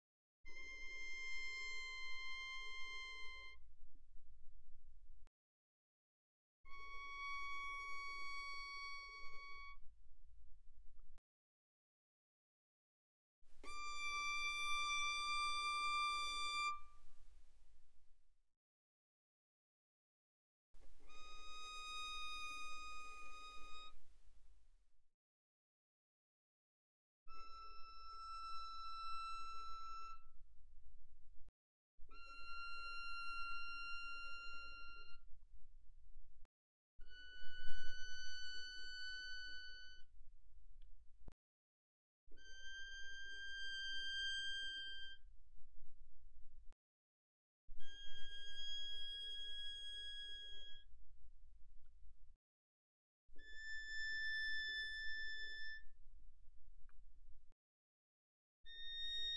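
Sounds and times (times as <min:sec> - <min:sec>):
violin bowed pianissimo on the E string: 0:00.5 - 0:03.7, 0:06.7 - 0:10.0, 0:13.6 - 0:17.8, 0:20.8 - 0:24.4, 0:27.3 - 0:30.4, 0:32.1 - 0:35.3, 0:37.0 - 0:40.3, 0:42.3 - 0:45.4, 0:47.8 - 0:51.0, 0:53.3 - 0:57.0, 0:58.7 - 0:59.3.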